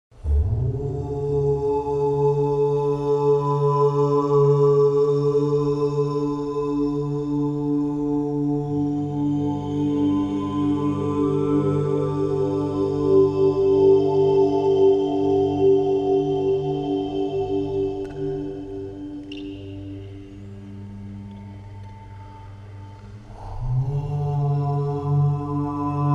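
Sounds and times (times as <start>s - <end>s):
om chant harmonisation: 0.2s - 26.1s.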